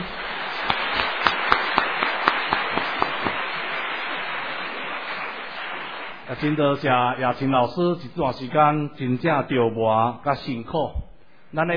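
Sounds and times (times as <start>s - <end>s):
audience applauding: 0.0s - 6.6s
speech: 6.4s - 11.7s.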